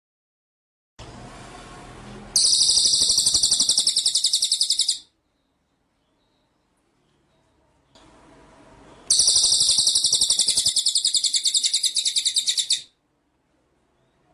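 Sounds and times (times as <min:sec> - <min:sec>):
White-rumped shama giving a buzzy high rattling trill: 0:02.4 - 0:05.1, 0:09.1 - 0:13.0.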